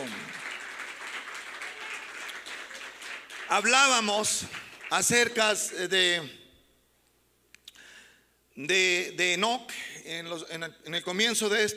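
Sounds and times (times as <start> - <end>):
crowd clapping loudly: 0.0 - 5.6
speech: 3.5 - 6.4, 8.6 - 11.7.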